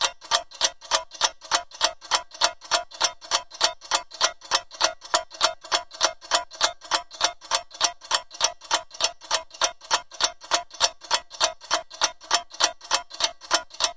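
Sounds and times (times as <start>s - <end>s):
clock ticking: 0.0s - 13.9s.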